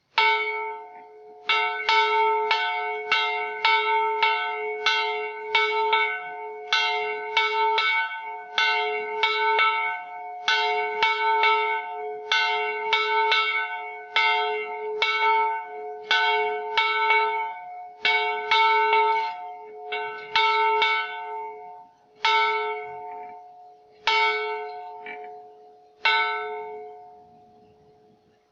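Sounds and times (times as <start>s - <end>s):
bell: 0.0s - 28.5s.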